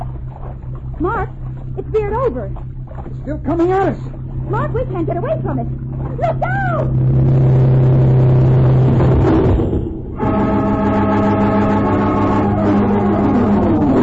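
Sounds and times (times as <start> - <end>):
wooden boat splintering in a speedboat crash: 0.0 - 9.6
speedboat engine roaring: 0.0 - 14.0
speech: 1.0 - 8.0.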